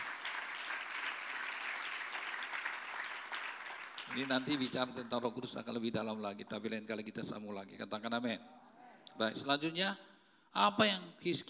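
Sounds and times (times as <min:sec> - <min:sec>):
audience applauding: 0:00.0 - 0:05.3
speech: 0:04.1 - 0:08.6, 0:09.2 - 0:11.4.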